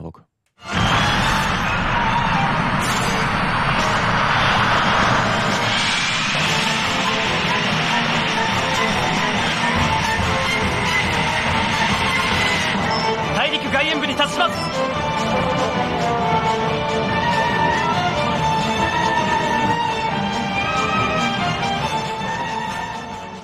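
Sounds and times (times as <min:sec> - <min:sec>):
music: 0:00.6 - 0:23.4
spaceship jet engine sound effect: 0:00.6 - 0:23.4.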